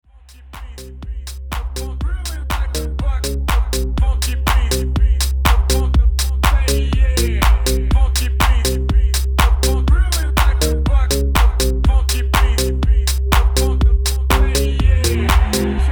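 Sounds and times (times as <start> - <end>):
funky beat: 0.2 - 15.8.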